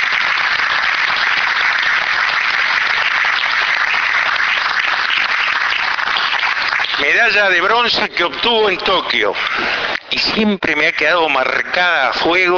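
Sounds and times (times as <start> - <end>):
audience applause: 0.0 - 9.6
speech: 7.2 - 12.5.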